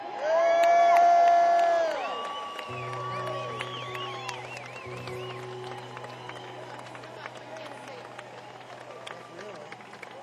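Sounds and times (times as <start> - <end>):
audience cheering and whooping to welcome a guitarist on stage: 0.0 - 10.2
sustained tones: 2.7 - 10.2.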